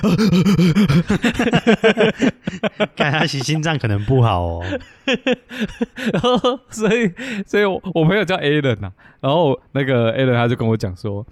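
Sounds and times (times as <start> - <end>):
person imitating excited heavy panting: 0.0 - 2.9, 3.9 - 6.2, 7.2 - 7.5
laughter: 0.0 - 7.4
speech: 0.0 - 11.3.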